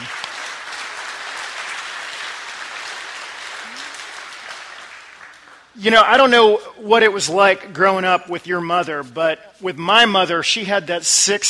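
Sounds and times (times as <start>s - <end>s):
crowd applauding: 0.0s - 5.8s
speech: 5.8s - 11.4s.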